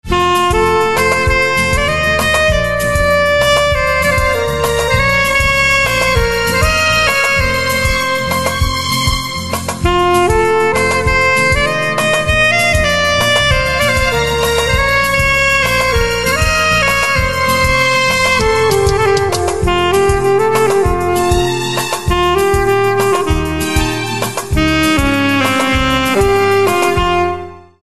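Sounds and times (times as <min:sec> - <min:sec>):
saxophone: 0:00.0 - 0:27.8.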